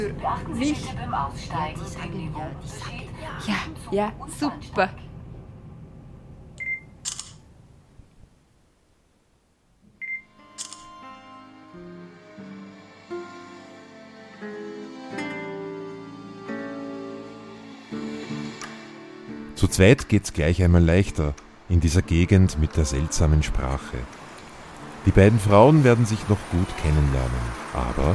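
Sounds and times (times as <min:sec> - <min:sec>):
speech: 0:00.0 - 0:05.1, 0:19.7 - 0:24.2, 0:25.0 - 0:28.1
camera focus beep: 0:06.6 - 0:07.4, 0:10.0 - 0:10.9
camera shutter clicks taking a group photo: 0:07.0 - 0:07.5, 0:10.6 - 0:11.0.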